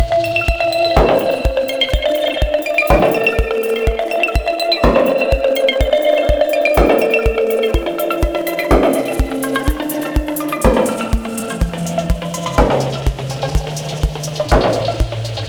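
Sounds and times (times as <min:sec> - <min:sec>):
dub music loop: 0:00.0 - 0:15.4.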